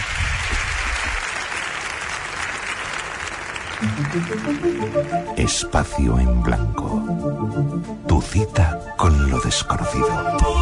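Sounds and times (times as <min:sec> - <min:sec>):
audience applause: 0:00.0 - 0:05.7
speech: 0:03.8 - 0:10.5.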